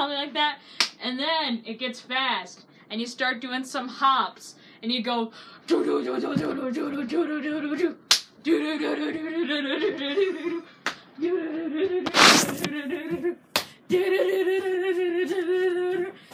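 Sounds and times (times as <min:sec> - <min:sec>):
speech: 0:00.2 - 0:16.3
hand clapping under the knee: 0:08.1 - 0:08.3, 0:10.8 - 0:11.0, 0:13.5 - 0:13.8.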